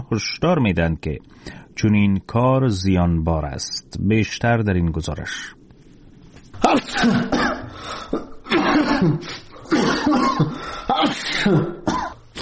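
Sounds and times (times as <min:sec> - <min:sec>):
speech: 0:00.0 - 0:05.6, 0:06.7 - 0:08.3, 0:09.0 - 0:09.4, 0:10.0 - 0:12.0
person sneezing in a sickbed: 0:06.6 - 0:12.4.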